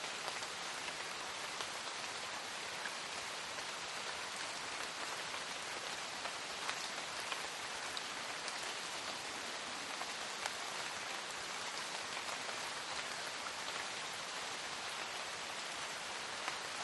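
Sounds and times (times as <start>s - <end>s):
light rain: 0.0s - 16.8s.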